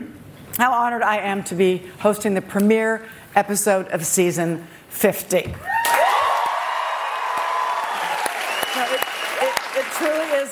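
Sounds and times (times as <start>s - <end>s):
speech: 0.6s - 5.8s
audience applause: 5.8s - 10.4s.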